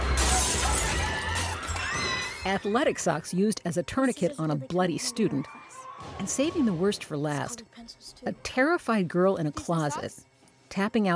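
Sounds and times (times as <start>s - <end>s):
window glass smashed with a skateboard: 0.1s - 1.6s
speech: 2.5s - 11.1s.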